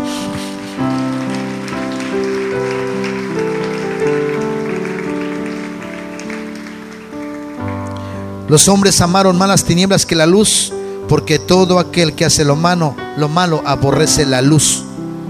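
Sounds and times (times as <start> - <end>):
audience applause: 0.0 - 8.0
speech: 8.5 - 14.9.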